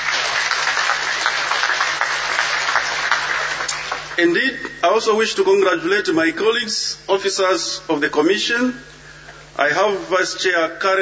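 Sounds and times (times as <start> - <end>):
audience clapping: 0.0 - 4.2
speech: 4.2 - 8.9, 9.6 - 10.9.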